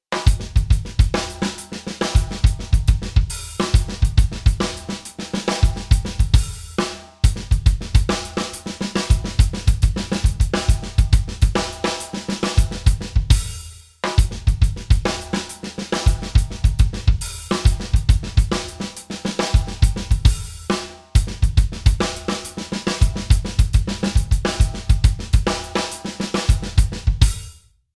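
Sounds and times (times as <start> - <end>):
drum loop: 0.1 - 27.6.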